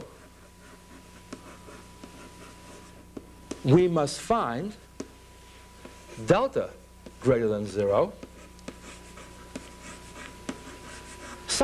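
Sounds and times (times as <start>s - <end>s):
writing scratching during a mathematics lecture: 0.0s - 3.7s, 8.2s - 11.6s
speech: 3.6s - 4.8s, 6.2s - 8.3s.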